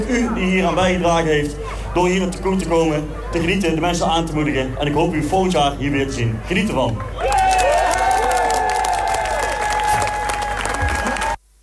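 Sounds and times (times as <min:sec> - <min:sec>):
speech: 0:00.0 - 0:07.2
audience applause and cheering: 0:07.0 - 0:11.4.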